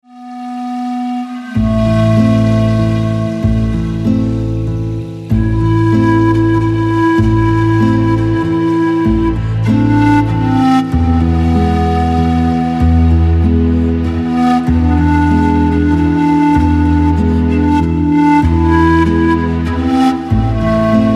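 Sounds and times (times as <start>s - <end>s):
pan flute melody: 0.0s - 21.1s.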